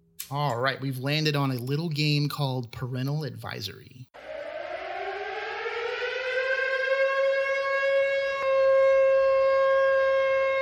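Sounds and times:
speech: 0.3s - 4.2s
alarm siren: 4.2s - 10.6s.

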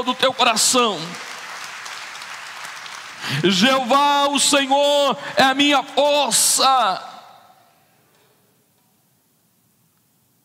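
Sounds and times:
speech: 0.0s - 1.3s, 3.2s - 7.1s
audience applauding: 0.0s - 6.6s.

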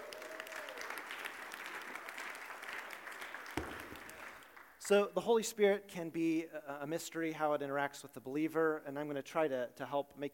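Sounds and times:
audience clapping: 0.0s - 5.0s
thump: 3.6s - 4.0s
speech: 4.9s - 10.3s.

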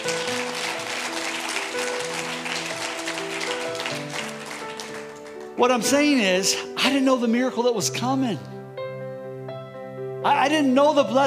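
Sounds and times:
audience clapping: 0.0s - 5.9s
sustained keyboard or organ chords: 0.0s - 11.2s
speech: 5.6s - 8.6s, 10.4s - 11.2s.

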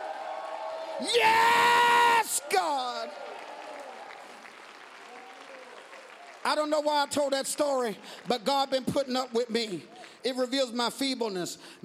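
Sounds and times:
audience shouting a victory shout: 0.0s - 4.0s
speech: 1.0s - 1.7s, 6.5s - 11.8s.

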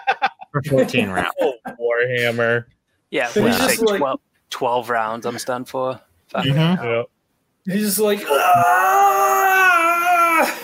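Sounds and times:
laughter: 0.0s - 0.9s
speech: 0.5s - 9.6s
person imitating an agonized scream: 8.2s - 10.6s.

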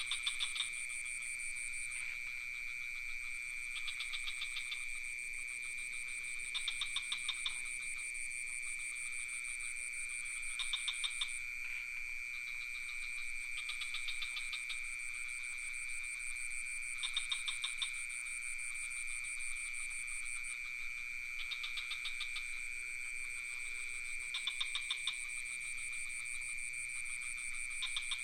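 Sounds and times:
crickets trilling: 0.0s - 28.2s.

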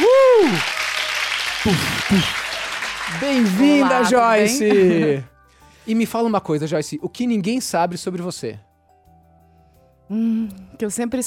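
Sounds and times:
audience applause: 0.0s - 4.9s
speech: 1.6s - 2.5s, 3.1s - 8.7s, 10.1s - 11.2s
laughter: 1.6s - 2.6s, 3.2s - 5.2s.

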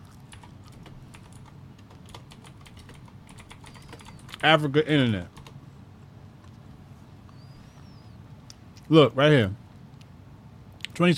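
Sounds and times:
typing a search on a computer keyboard: 0.3s - 4.6s, 5.2s - 5.6s
speech: 4.4s - 5.4s, 8.9s - 9.6s, 11.0s - 11.1s.

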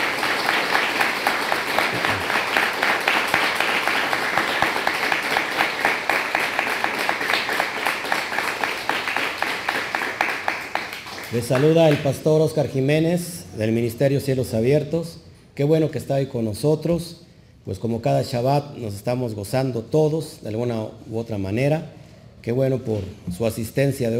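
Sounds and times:
studio audience applause: 0.0s - 12.2s
speech: 11.4s - 24.1s.

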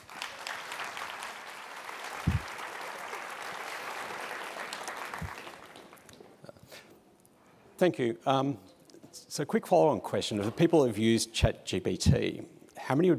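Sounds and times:
audience applause welcoming a guest speaker at a healthcare event: 0.0s - 6.2s
speech: 7.8s - 8.7s, 9.3s - 13.1s.

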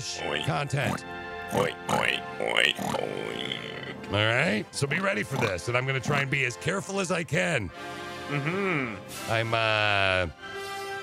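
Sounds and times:
speech: 0.0s - 10.6s
pig oink warning sound effect: 0.3s - 4.1s, 5.2s - 6.3s.

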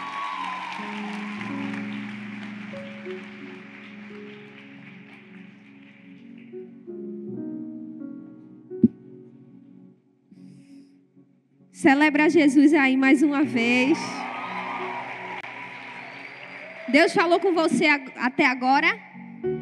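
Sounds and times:
audience applause: 0.0s - 6.8s, 13.4s - 18.2s
speech: 11.8s - 14.2s, 16.9s - 19.1s.

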